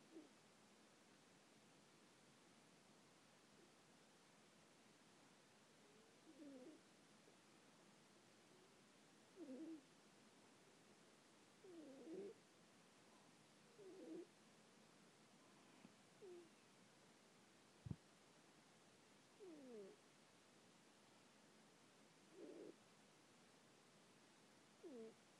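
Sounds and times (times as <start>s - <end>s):
cats snoring: 6.1s - 6.8s, 9.3s - 9.9s, 11.6s - 12.4s, 13.7s - 14.3s, 16.2s - 16.5s, 19.4s - 20.0s, 22.3s - 22.8s, 24.8s - 25.2s.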